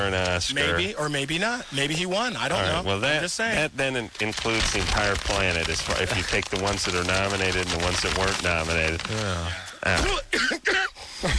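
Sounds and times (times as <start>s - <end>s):
speech: 0.0s - 11.3s
raspy coughs: 10.1s - 11.3s.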